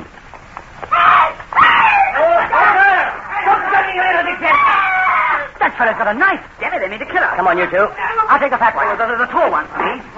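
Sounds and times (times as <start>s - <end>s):
woman screaming: 0.9s - 3.1s, 4.4s - 5.6s
speech: 5.8s - 10.1s.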